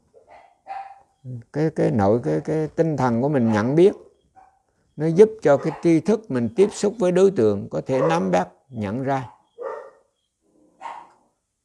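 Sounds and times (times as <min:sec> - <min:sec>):
dog barking: 0:00.1 - 0:01.2, 0:03.3 - 0:04.7, 0:05.5 - 0:06.9, 0:07.8 - 0:08.5, 0:09.2 - 0:11.3
speech: 0:01.2 - 0:04.0, 0:05.0 - 0:09.4.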